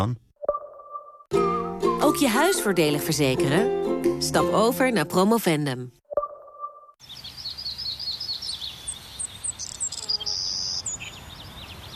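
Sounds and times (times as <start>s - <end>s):
speech: 0.0s - 0.2s, 2.1s - 6.0s
birds whistling: 7.0s - 11.9s.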